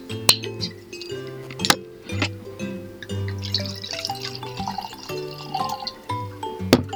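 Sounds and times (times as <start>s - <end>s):
bottle clinking on glass rim: 0.2s - 6.9s
wine pouring into a glass: 0.5s - 1.6s, 2.5s - 6.3s.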